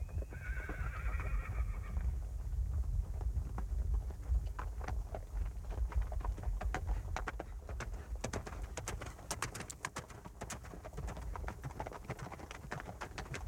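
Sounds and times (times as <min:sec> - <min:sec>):
horse whinnying: 0:00.2 - 0:02.0
clattering hoofbeats: 0:03.1 - 0:13.4.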